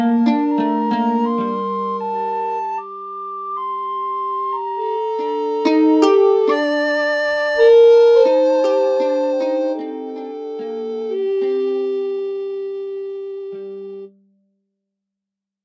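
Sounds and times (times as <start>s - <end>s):
quiet flute: 0.0s - 14.1s.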